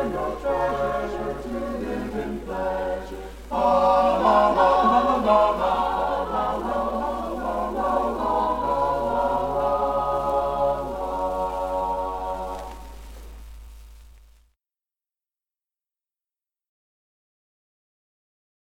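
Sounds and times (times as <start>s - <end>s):
chorus singing: 0.0s - 13.3s.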